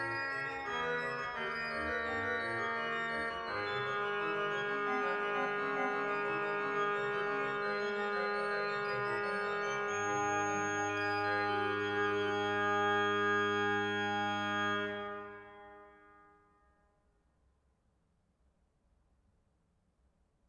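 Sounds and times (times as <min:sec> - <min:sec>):
organ piece: 0:00.0 - 0:15.6.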